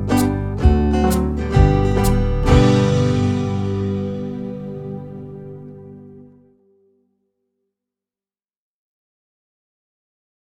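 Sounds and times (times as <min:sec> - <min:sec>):
banjo backing track in the key of G: 0:00.0 - 0:06.3.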